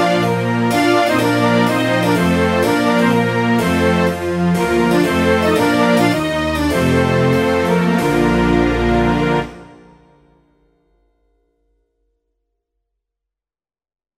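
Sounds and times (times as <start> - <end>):
trumpet tune: 0.0 - 10.2.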